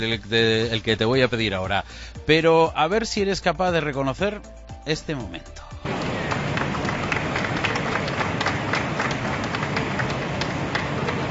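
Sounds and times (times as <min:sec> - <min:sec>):
speech: 0:00.0 - 0:06.0
applause on a train platform: 0:05.8 - 0:11.3
train machinery: 0:05.9 - 0:11.3.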